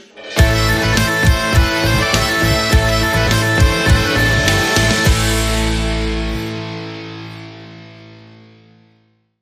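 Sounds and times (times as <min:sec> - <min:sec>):
metal music sting: 0:00.2 - 0:07.7.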